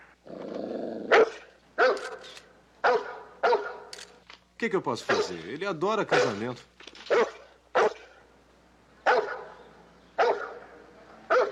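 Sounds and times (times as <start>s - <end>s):
dog barking: 1.1s - 2.2s, 2.8s - 3.9s, 5.1s - 5.4s, 6.1s - 6.4s, 7.1s - 8.2s, 9.0s - 9.6s, 10.2s - 11.5s
speech: 4.6s - 6.7s.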